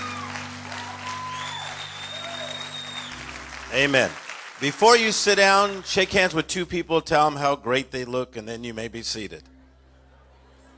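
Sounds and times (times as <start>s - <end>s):
audience applauding the music group: 0.0s - 6.4s
speech: 3.7s - 9.5s.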